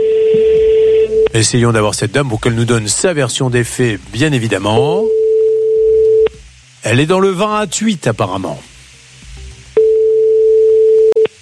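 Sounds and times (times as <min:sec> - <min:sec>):
French telephone ringback tone of an unanswered call: 0:00.0 - 0:01.3, 0:05.1 - 0:06.3, 0:09.8 - 0:11.3
speech: 0:01.4 - 0:05.2, 0:06.8 - 0:08.7.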